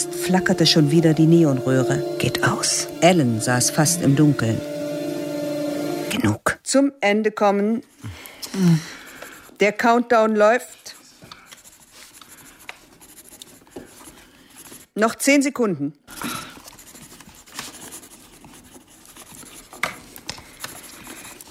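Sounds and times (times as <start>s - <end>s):
speech: 0.0s - 4.8s, 6.2s - 9.0s, 9.6s - 11.0s, 15.0s - 16.3s
pens scratching on paper during a test: 9.0s - 9.8s, 11.3s - 15.0s, 16.2s - 21.4s.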